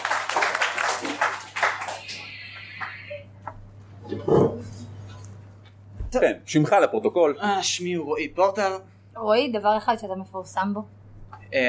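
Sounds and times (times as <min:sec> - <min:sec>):
crowd applauding: 0:00.0 - 0:03.1
steady low hum: 0:01.5 - 0:11.6
speech: 0:06.2 - 0:11.6.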